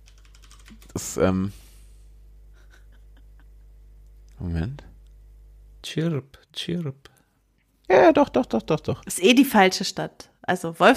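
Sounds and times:
computer keyboard typing: 0:00.0 - 0:01.0
speech: 0:00.7 - 0:01.6, 0:04.5 - 0:04.9, 0:06.0 - 0:07.1, 0:07.9 - 0:10.9.

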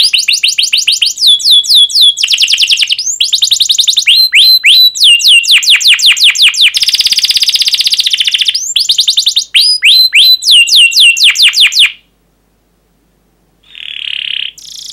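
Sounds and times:
canary song: 0:00.0 - 0:12.2, 0:13.6 - 0:14.9.

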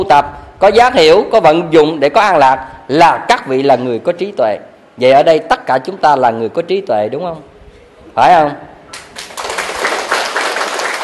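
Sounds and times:
speech: 0:00.0 - 0:07.5, 0:08.2 - 0:08.7
audience clapping during a Buddhist monk's dharma talk: 0:08.9 - 0:11.0.

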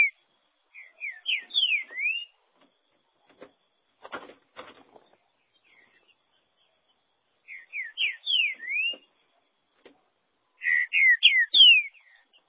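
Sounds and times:
green-winged saltator whistled song: 0:00.8 - 0:02.3, 0:07.5 - 0:09.1, 0:10.6 - 0:12.0.

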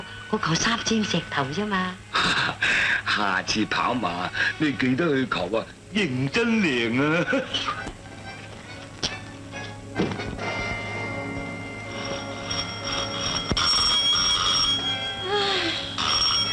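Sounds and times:
speech: 0:00.3 - 0:07.9
telephone ringing: 0:10.4 - 0:16.5.

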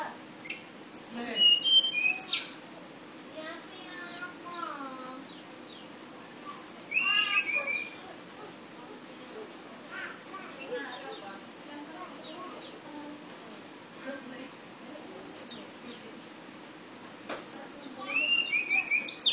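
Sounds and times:
flowerpecker whistled song in sulingan style: 0:00.4 - 0:02.6, 0:06.5 - 0:08.3, 0:15.2 - 0:15.7, 0:17.4 - 0:19.3.

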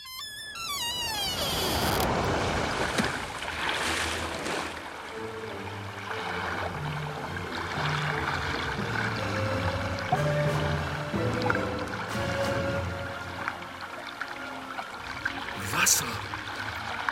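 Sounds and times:
falling squeal: 0:00.0 - 0:02.1
water rushing and trickling outside open window: 0:00.6 - 0:17.1.

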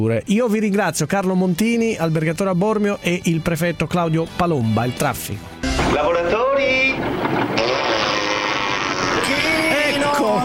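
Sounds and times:
speech: 0:00.0 - 0:07.8
raspberry blown with the lips in the style of Alberto Sordi: 0:07.9 - 0:09.5.

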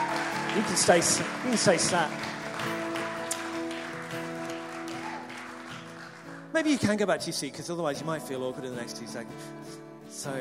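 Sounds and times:
audience applause: 0:00.0 - 0:07.0
speech: 0:00.6 - 0:02.8, 0:06.6 - 0:10.3.

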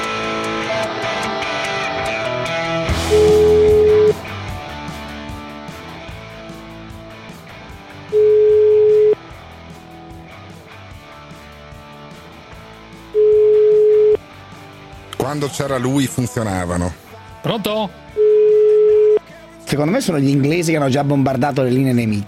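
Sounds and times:
busy music: 0:00.0 - 0:22.2
telephone ringback tone through the earpiece: 0:03.1 - 0:04.2, 0:08.1 - 0:09.2, 0:13.2 - 0:14.2, 0:18.2 - 0:19.2
speech: 0:15.4 - 0:18.3, 0:19.7 - 0:22.2.

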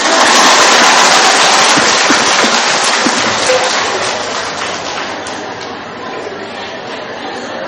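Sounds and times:
people clapping hands: 0:00.0 - 0:05.8.

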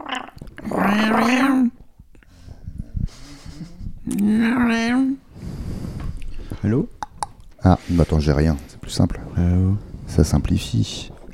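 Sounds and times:
person imitating cat meows: 0:00.0 - 0:01.8
speech: 0:00.7 - 0:01.8, 0:04.1 - 0:05.2, 0:06.6 - 0:06.9, 0:07.7 - 0:11.1.

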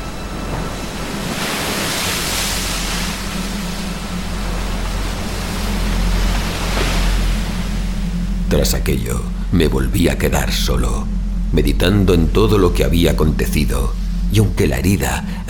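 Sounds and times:
sea waves crashing against the rocky pinnacles of a breakwater: 0:00.0 - 0:08.1
low rumbling hum: 0:00.0 - 0:15.4
speech: 0:08.5 - 0:15.4.

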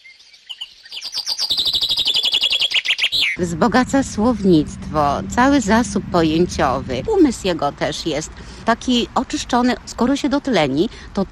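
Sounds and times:
birds singing: 0:00.0 - 0:03.4
speech: 0:03.4 - 0:11.3.

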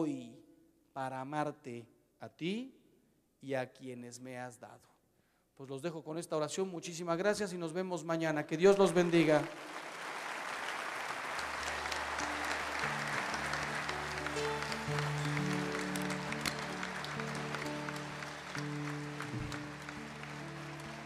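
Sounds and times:
speech: 0:00.0 - 0:00.3, 0:01.0 - 0:02.8, 0:03.4 - 0:04.9, 0:05.6 - 0:09.9
audience applause: 0:08.9 - 0:21.0
sustained musical tones: 0:11.6 - 0:21.0.

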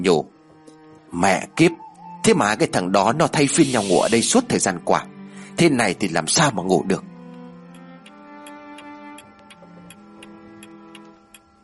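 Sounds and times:
speech: 0:00.0 - 0:00.3, 0:01.1 - 0:07.1
clock ticking toward midnight: 0:07.3 - 0:11.6.

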